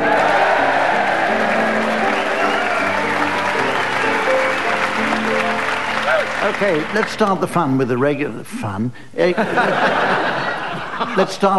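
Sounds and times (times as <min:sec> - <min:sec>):
studio audience applause welcoming the scorer on a team comedy panel game in Brighton: 0:00.0 - 0:07.5
speech: 0:06.5 - 0:11.5
laughter: 0:09.3 - 0:11.5.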